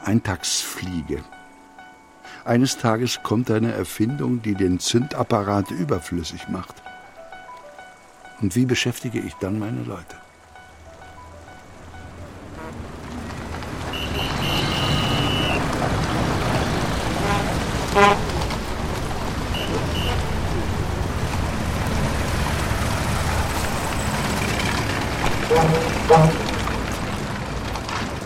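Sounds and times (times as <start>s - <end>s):
speech: 0.1s - 1.4s, 2.4s - 6.9s, 8.4s - 10.2s
dense street traffic rumble: 10.3s - 28.2s
car horns honking: 12.0s - 16.0s, 17.0s - 18.6s, 19.4s - 20.8s, 25.2s - 27.0s.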